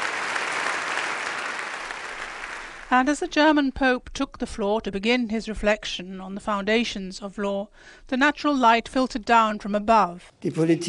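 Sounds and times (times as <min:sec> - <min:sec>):
crowd in a hall cheering and applauding: 0:00.0 - 0:02.9
speech: 0:02.9 - 0:10.8.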